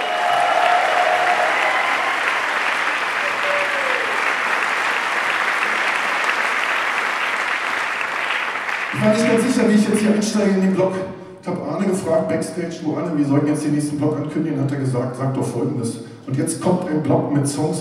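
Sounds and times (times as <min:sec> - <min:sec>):
audience applause: 0:00.0 - 0:09.7
speech: 0:09.0 - 0:17.7.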